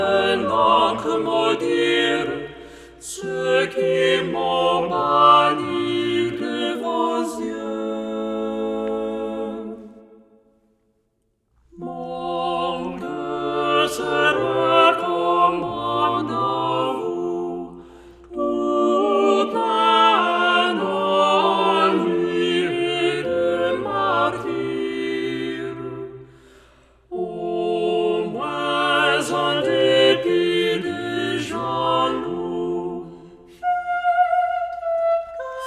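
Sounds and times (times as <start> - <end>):
song without soprano part: 0.0 - 11.0, 11.6 - 35.6.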